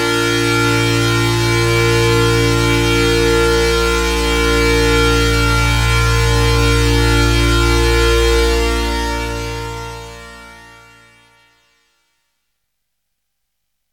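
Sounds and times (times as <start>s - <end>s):
Chroma polysynth portamento: 0.0s - 10.4s.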